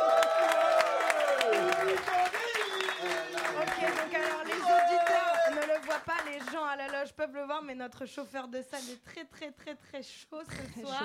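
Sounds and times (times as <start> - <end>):
live studio audience applauding at a radio show taping: 0.0 - 6.6
speech: 7.2 - 11.0.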